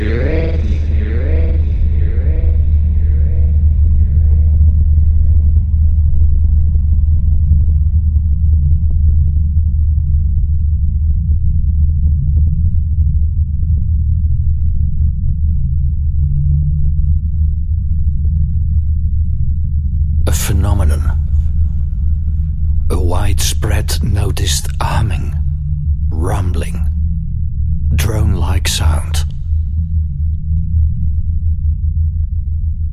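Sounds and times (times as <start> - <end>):
unexplained low frequency drone: 0.0 - 32.9.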